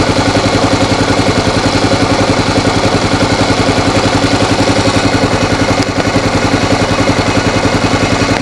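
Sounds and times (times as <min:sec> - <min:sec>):
motorcycle engine knock: 0:00.0 - 0:08.4.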